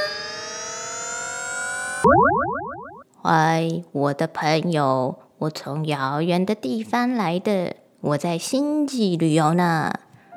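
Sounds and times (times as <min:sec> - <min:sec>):
flying saucer sound effect: 0:00.0 - 0:03.0
speech: 0:03.2 - 0:10.0.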